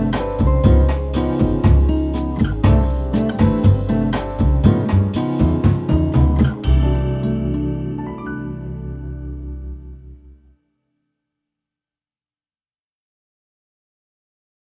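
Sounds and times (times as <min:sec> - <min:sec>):
bossa nova music: 0:00.0 - 0:10.4.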